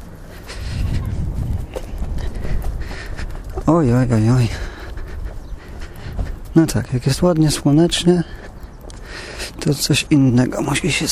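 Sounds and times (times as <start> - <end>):
wind blowing into the microphone: 0.5 - 8.8
speech: 3.7 - 4.7, 6.6 - 8.4, 9.6 - 11.0.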